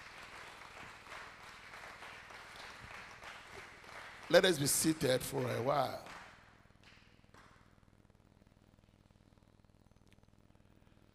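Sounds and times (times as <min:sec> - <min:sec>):
crowd clapping: 0:00.0 - 0:07.7
speech: 0:04.3 - 0:06.2.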